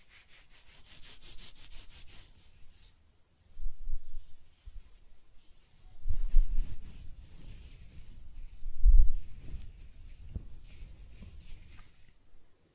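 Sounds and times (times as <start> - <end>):
close-up hair scratching, brushing and stroking: 0.0 - 3.0, 4.0 - 12.3
faint papery hiss: 0.0 - 12.7.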